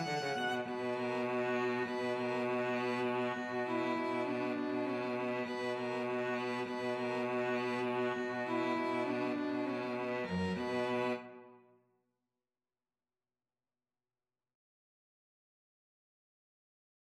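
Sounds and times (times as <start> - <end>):
string trio playing: 0.0 - 11.4.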